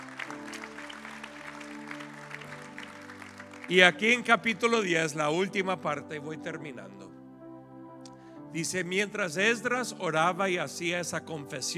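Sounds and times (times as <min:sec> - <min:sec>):
audience clapping: 0:00.0 - 0:04.5
sustained low keyboard or organ chords: 0:00.0 - 0:11.7
speech: 0:03.7 - 0:07.1, 0:08.5 - 0:11.7.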